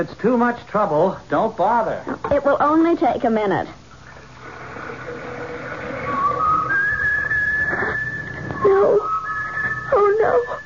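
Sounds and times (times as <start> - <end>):
speech: 0.0 - 3.8, 8.6 - 9.1, 10.2 - 10.6
kettle whistling: 4.1 - 10.6.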